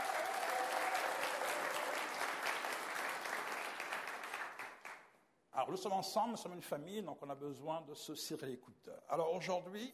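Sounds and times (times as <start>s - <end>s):
church congregation applauding during a French-language service: 0.0s - 5.1s
speech: 5.6s - 9.9s.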